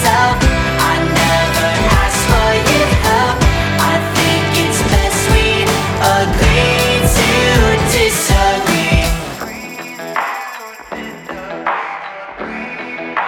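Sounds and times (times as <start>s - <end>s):
acoustic music: 0.0s - 9.7s.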